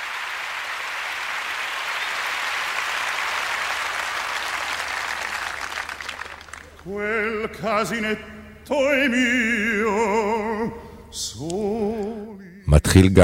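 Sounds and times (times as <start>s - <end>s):
audience applause: 0.0s - 7.0s
speech: 6.8s - 13.2s.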